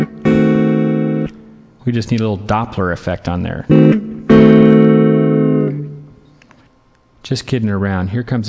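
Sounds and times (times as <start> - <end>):
D-sharp diminished seventh chord: 0.0 - 1.7, 3.5 - 6.2
speech: 1.8 - 4.0, 7.2 - 8.4.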